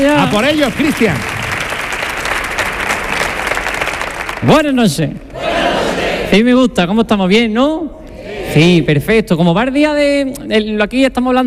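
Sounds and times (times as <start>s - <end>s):
speech: 0.0s - 1.3s, 4.4s - 5.7s, 6.3s - 11.4s
audience applause: 0.0s - 4.7s.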